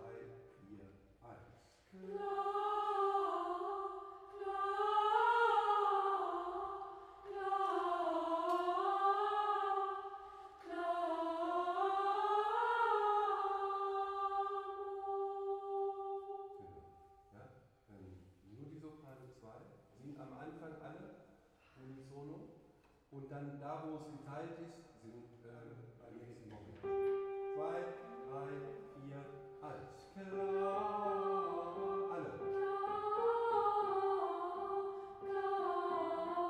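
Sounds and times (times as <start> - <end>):
soprano singing: 0.0 - 0.9, 1.9 - 17.3, 26.8 - 36.4.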